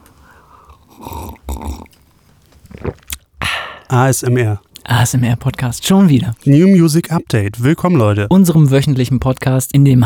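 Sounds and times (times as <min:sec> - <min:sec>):
sipping coffee, slurping and swallowing: 0:00.3 - 0:03.9
speech: 0:03.9 - 0:10.0.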